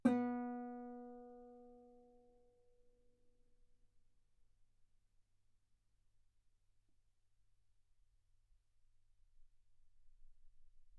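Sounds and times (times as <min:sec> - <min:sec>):
guitar note B3: 0:00.0 - 0:01.5.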